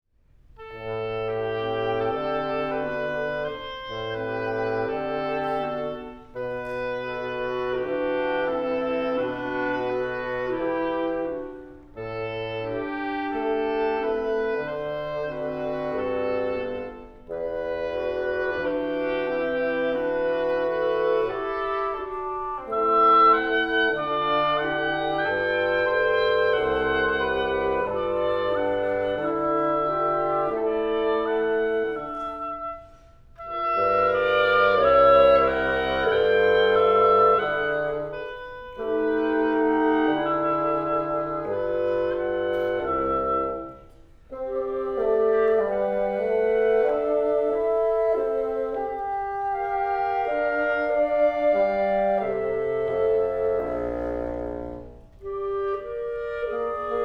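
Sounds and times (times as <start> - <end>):
quartet playing andante: 0.5 - 57.0.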